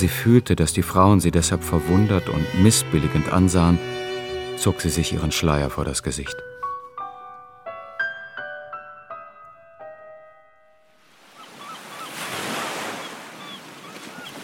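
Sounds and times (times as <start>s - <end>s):
speech: 0.0s - 4.0s, 4.6s - 6.5s
bright ringing melodic notes: 0.0s - 10.4s
sea waves breaking on a beach: 11.1s - 14.4s.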